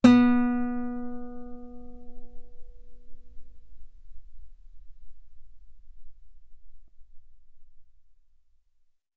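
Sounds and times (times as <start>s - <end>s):
loud guitar note on the B string: 0.0s - 6.2s.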